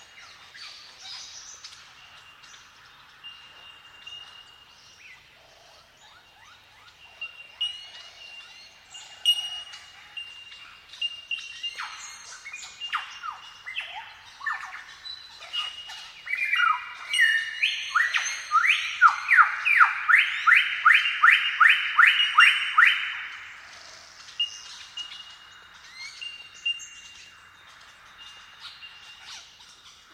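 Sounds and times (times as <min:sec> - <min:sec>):
insects: 0:00.0 - 0:30.1
lyrebirds calling: 0:05.1 - 0:30.1
honeyeaters calling: 0:16.3 - 0:23.7.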